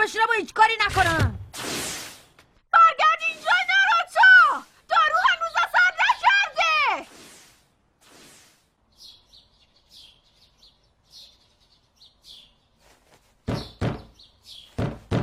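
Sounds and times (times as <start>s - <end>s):
speech: 0.0s - 1.4s
birds chirping: 3.1s - 6.8s, 8.8s - 15.2s
knocking on a door: 13.5s - 14.2s, 14.8s - 15.2s.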